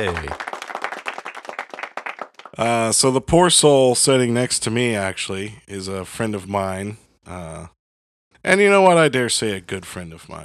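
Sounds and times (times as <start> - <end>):
speech: 0.0 - 0.5, 2.6 - 7.8, 8.4 - 10.4
applause: 0.0 - 3.0.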